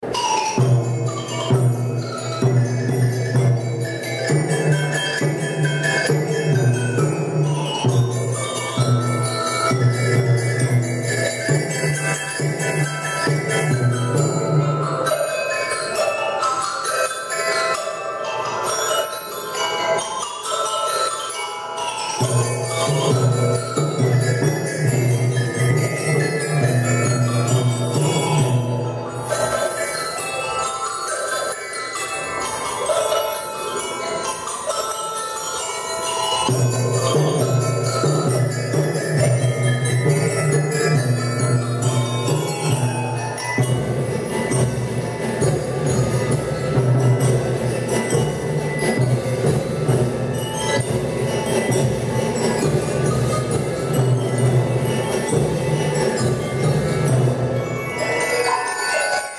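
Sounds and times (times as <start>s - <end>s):
percussion: 0.0s - 59.3s.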